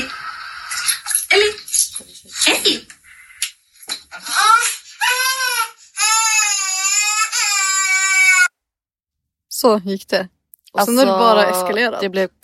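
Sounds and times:
small child crying: 4.3 - 8.3
speech: 9.6 - 12.4.

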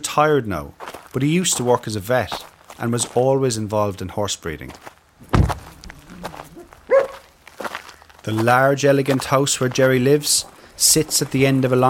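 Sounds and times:
speech: 0.2 - 4.9, 8.3 - 11.8
dogs barking: 6.1 - 7.3.

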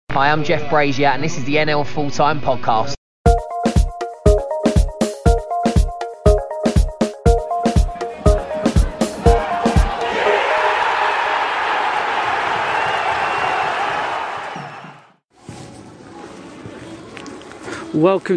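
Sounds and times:
speech: 0.2 - 3.0, 18.0 - 18.3
loud sharp rhythmic beats at Edgeley Park: 3.3 - 12.2
football crowd roaring at Edgeley Park, Stockport County vs Torquay: 8.0 - 15.2.

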